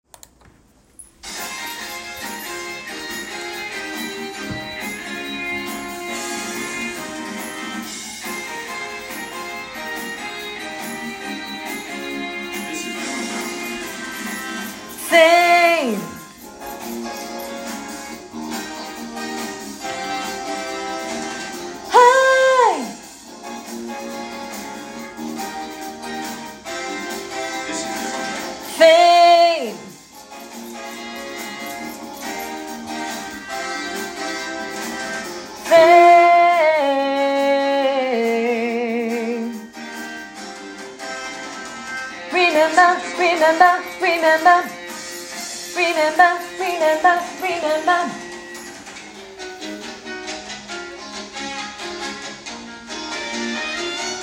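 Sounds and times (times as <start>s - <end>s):
tenor singing: 14.9s - 16.2s, 21.9s - 23.0s, 28.6s - 29.9s, 35.6s - 39.5s, 42.3s - 44.8s, 45.7s - 48.2s.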